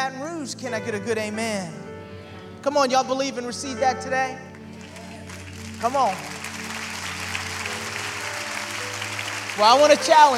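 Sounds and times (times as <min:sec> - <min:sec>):
speech: 0:00.0 - 0:01.9, 0:02.6 - 0:04.5, 0:05.8 - 0:06.3, 0:09.6 - 0:10.3
audience clapping: 0:04.5 - 0:10.3.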